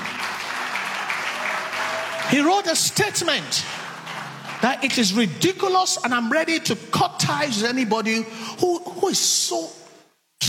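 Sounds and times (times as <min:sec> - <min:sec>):
audience applause: 0:00.0 - 0:05.3
speech: 0:02.3 - 0:03.8, 0:04.6 - 0:09.8.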